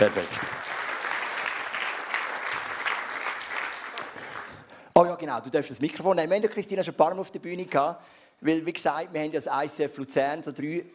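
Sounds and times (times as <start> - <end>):
speech: 0.0 - 0.5, 5.0 - 10.9
audience clapping: 0.0 - 4.9.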